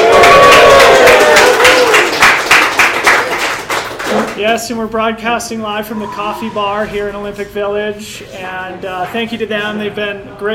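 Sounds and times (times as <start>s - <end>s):
live audience cheering with raised voices at a coffee bar: 0.0s - 3.4s
live audience clapping at a coffee bar in Olympic Village: 0.0s - 4.4s
speech: 4.4s - 10.5s.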